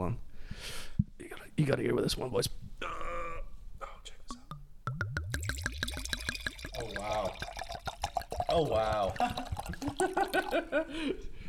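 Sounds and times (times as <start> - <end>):
speech: 0.0 - 0.8, 1.6 - 3.0, 8.6 - 11.4
wine pouring from a bottle into a glass: 5.2 - 10.7.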